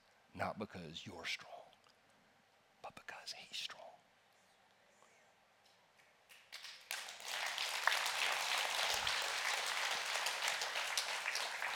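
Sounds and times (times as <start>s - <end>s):
speech: 0.4s - 1.6s
audience clapping: 6.3s - 11.7s.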